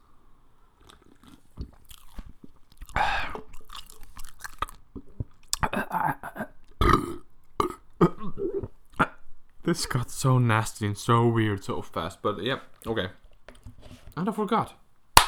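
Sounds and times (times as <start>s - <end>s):
chewing a mouthful of popcorn: 0.7s - 9.2s
speech: 9.7s - 13.2s, 14.2s - 14.8s.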